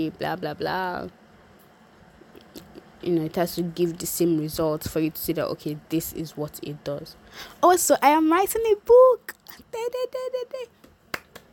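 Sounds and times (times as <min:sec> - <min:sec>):
speech: 0:00.0 - 0:01.2, 0:03.0 - 0:10.8
hand clapping: 0:10.8 - 0:11.5.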